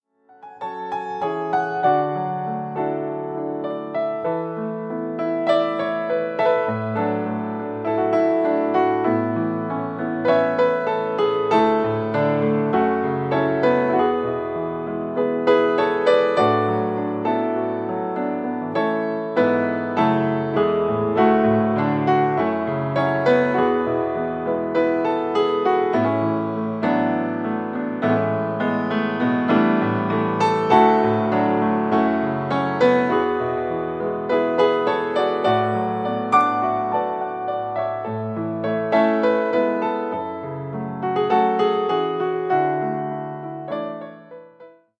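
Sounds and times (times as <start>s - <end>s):
instrumental music: 0.2s - 44.8s.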